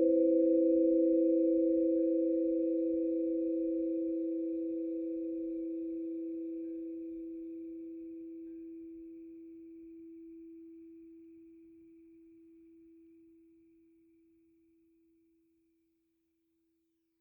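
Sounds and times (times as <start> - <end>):
chimes in just ratios: 0.0 - 13.2.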